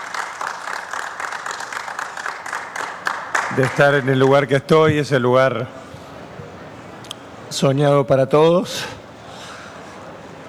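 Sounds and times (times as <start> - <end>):
applause in a press conference room: 0.0 - 4.8
speech: 3.5 - 5.8, 7.5 - 9.0.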